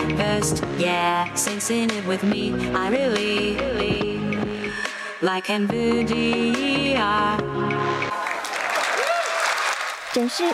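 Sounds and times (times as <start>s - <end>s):
speech: 0.1s - 4.3s, 5.2s - 7.6s, 10.2s - 10.5s
crowd exclamations: 8.1s - 10.5s
tech expo audience applause: 8.1s - 10.5s.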